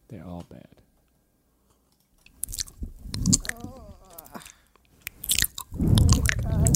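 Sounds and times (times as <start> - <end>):
close-miked ASMR eating with crunching and chewing: 2.2 - 6.7
squishy moist mouth sounds: 2.3 - 6.7.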